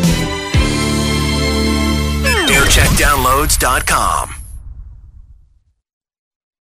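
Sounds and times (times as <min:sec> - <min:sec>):
jingle montage: 0:00.1 - 0:04.4.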